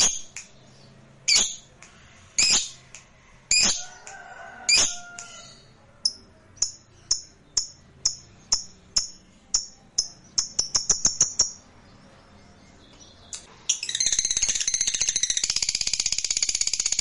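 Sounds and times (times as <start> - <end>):
lovebird making harsh buzzy chirps: 0.0 - 0.6, 1.2 - 1.7, 2.4 - 3.9, 6.0 - 11.7, 13.3 - 17.0.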